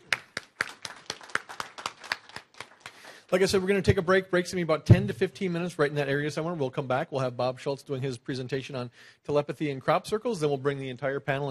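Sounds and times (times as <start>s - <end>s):
audience applause: 0.0s - 3.6s
speech: 3.3s - 11.4s.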